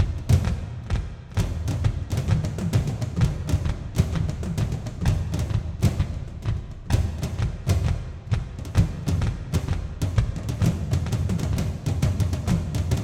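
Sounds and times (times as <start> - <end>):
dragon battle drums like a giant heart: 0.0 - 13.0.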